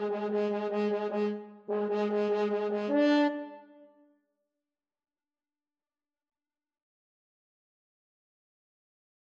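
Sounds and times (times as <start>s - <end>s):
french horn duet: 0.0s - 3.6s.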